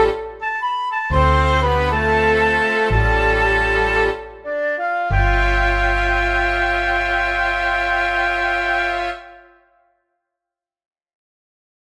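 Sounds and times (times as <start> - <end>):
MIDI music mix: 0.0 - 9.8.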